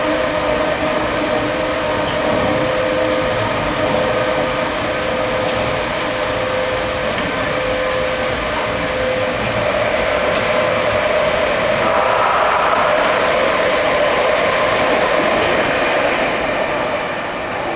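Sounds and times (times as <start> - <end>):
5000 series train running from Otemachi to Jimbocho: 0.0 - 17.7.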